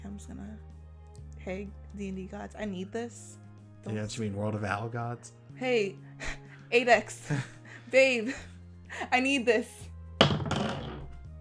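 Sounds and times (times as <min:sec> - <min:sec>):
speech: 0:00.2 - 0:00.8, 0:01.4 - 0:09.9
die clattering onto a hard tabletop: 0:10.2 - 0:11.2.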